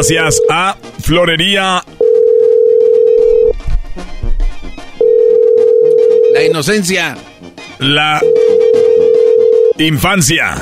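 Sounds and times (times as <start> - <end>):
telephone ringback tones, call not answered: 0.0 - 0.8, 2.0 - 3.6, 5.0 - 6.7, 8.1 - 9.8
speech: 0.0 - 2.0, 6.4 - 8.4, 9.8 - 10.6.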